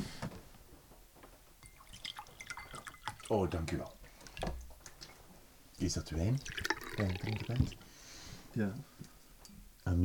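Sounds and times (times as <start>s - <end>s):
water pouring into a glass: 1.6s - 3.6s, 6.2s - 7.9s
speech: 3.3s - 4.0s, 5.8s - 7.8s, 8.5s - 9.1s.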